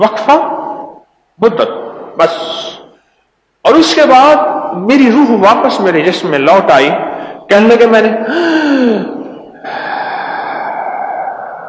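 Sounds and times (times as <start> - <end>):
speech: 0.0 - 0.5, 1.4 - 2.8, 3.7 - 9.2
sharp, drawn-in gasp of breath: 8.3 - 9.0, 9.6 - 11.6
long, steady, breathy rush: 8.3 - 11.6.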